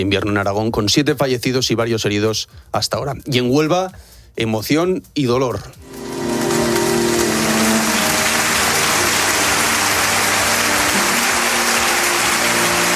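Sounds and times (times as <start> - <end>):
speech: 0.0 - 6.1
crowd applauding at a funeral: 5.9 - 12.9.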